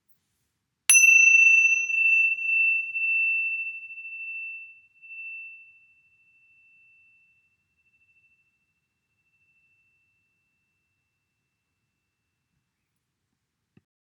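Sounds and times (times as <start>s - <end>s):
tingsha chimes: 0.9s - 10.5s.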